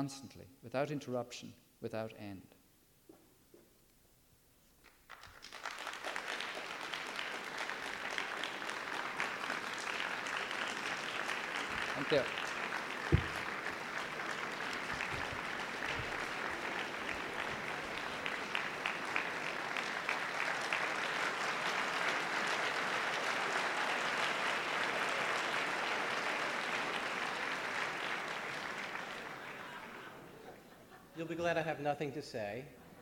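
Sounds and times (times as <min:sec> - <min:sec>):
speech: 0:00.0 - 0:02.6, 0:12.0 - 0:12.4, 0:31.2 - 0:32.8
audience applause: 0:05.0 - 0:30.8
laughter: 0:29.1 - 0:31.6.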